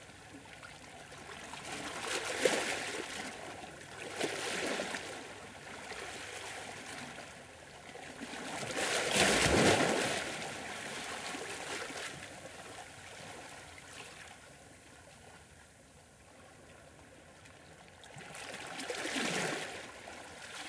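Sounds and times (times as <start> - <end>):
gentle ocean waves on rocks: 1.2 - 12.8, 18.1 - 20.6.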